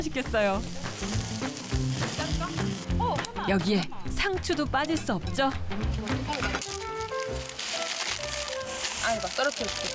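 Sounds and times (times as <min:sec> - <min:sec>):
speech: 0:00.0 - 0:01.4, 0:03.4 - 0:06.8, 0:09.1 - 0:09.9
meat sizzling on a barbecue grill: 0:00.0 - 0:03.0, 0:06.4 - 0:09.9.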